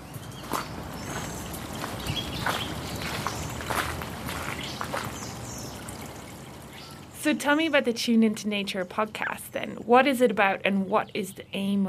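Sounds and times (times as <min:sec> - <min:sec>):
footsteps crunching: 0:00.4 - 0:05.4
flowing stream water: 0:00.7 - 0:07.7
speech: 0:07.2 - 0:11.8.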